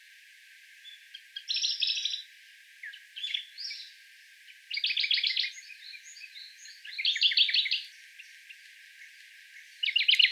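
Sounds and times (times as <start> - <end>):
Sakhalin leaf warbler singing rapid high trills on Tobishima: 0.8 - 10.3.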